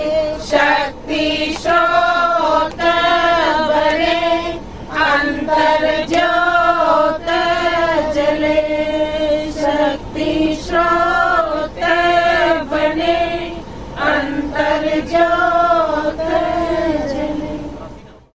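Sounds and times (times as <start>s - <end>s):
women singing a feminist song on a train in India: 0.0s - 18.0s.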